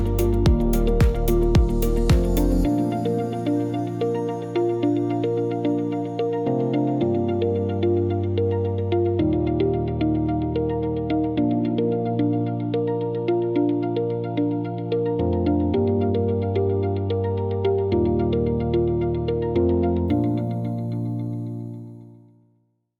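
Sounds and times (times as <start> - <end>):
elegant corporate music: 0.0 - 22.2.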